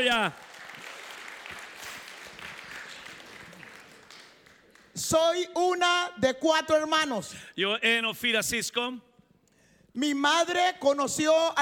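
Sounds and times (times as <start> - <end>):
speech: 0.0 - 0.5, 5.0 - 9.1, 10.0 - 11.6
audience applause: 0.0 - 5.0.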